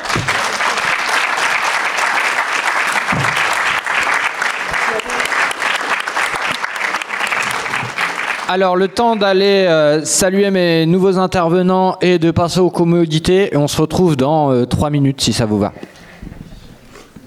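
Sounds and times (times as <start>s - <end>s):
large audience applauding: 0.0s - 9.4s
speech: 8.5s - 15.9s.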